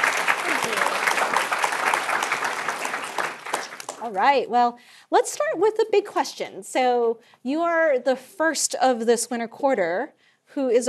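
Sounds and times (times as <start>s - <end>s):
audience applause: 0.0s - 4.2s
speech: 4.1s - 10.8s.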